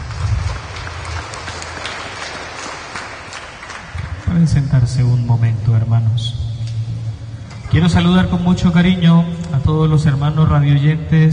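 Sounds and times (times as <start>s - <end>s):
audience applause: 0.0s - 4.3s
speech: 4.3s - 6.4s, 7.7s - 11.3s.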